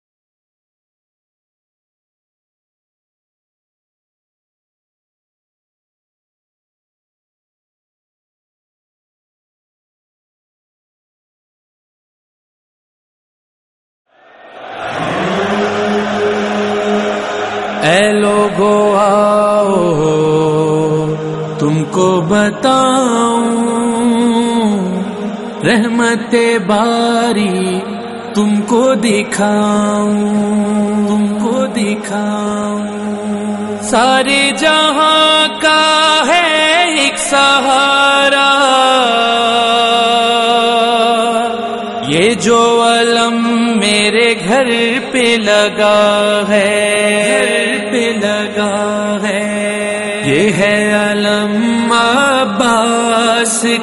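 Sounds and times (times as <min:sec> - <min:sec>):
nohay noha lament recitation: 0:14.7 - 0:53.8.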